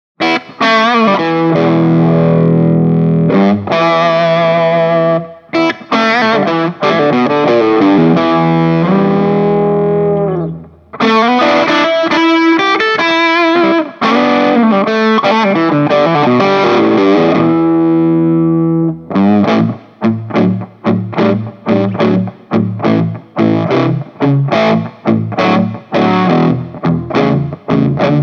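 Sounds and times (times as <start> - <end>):
Les Paul electric guitar at low gain: 0.2 - 28.2.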